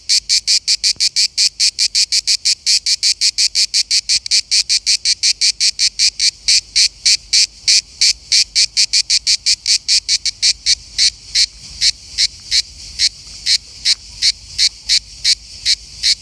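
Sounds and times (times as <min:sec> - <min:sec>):
cicada calling in rapid pulses: 0:00.0 - 0:16.2.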